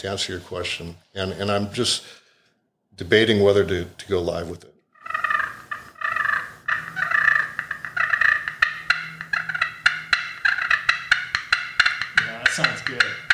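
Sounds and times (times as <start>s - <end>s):
speech: 0.0s - 2.2s, 3.0s - 4.8s
purrs and cuts on aluminum turkey call: 5.0s - 13.3s.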